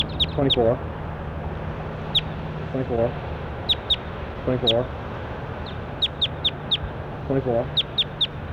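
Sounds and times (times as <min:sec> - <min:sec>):
recorded bird call: 0:00.0 - 0:00.9, 0:02.0 - 0:05.0, 0:05.6 - 0:08.4
speech: 0:00.4 - 0:01.0, 0:02.7 - 0:03.3, 0:04.4 - 0:05.0, 0:07.3 - 0:07.8.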